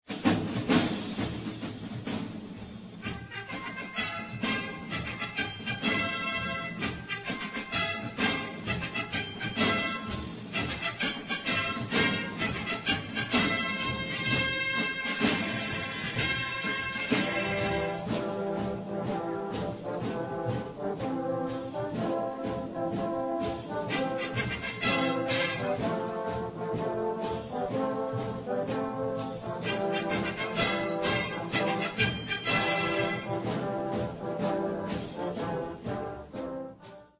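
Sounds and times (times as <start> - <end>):
orchestral music: 0.1 - 37.1.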